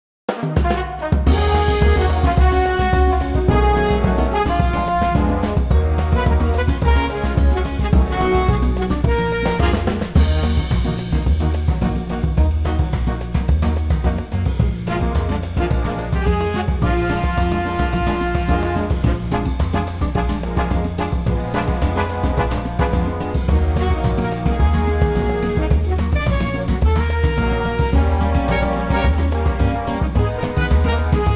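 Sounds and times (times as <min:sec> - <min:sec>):
big band music in E flat minor: 0:00.3 - 0:31.3.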